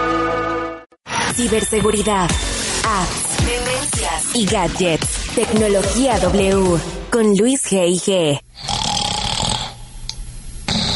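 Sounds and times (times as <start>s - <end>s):
speech: 1.3s - 8.7s
loud rasping snoring: 8.6s - 10.0s, 10.7s - 10.9s.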